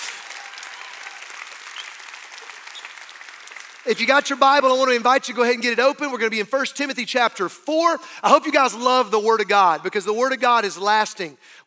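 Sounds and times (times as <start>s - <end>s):
audience clapping: 0.0s - 5.0s
speech: 3.8s - 11.6s.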